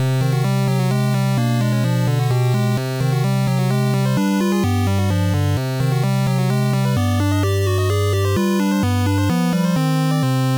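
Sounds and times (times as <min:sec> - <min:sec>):
India music: 0:00.0 - 0:10.5.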